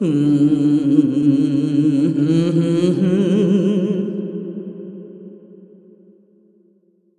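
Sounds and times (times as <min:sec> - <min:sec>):
person singing: 0:00.0 - 0:05.4.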